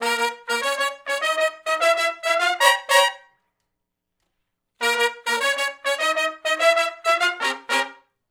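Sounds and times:
R&B horn section riff in B-flat minor, unison to harmony: 0.0s - 3.2s, 4.8s - 8.0s.

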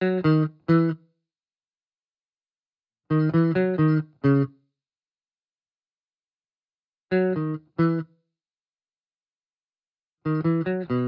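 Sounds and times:
1970s-style guitar in B at 135 BPM: 0.0s - 1.2s, 3.1s - 4.6s, 7.1s - 8.2s, 10.2s - 11.0s.

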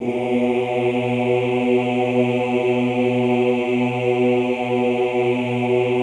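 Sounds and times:
classical choir singing ooh: 0.0s - 6.0s.

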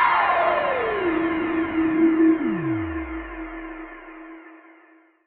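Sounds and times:
sweep sound: 0.1s - 4.5s.

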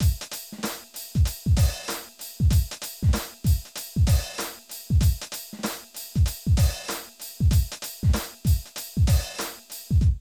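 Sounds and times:
hip-hop drum loop: 0.0s - 10.1s.

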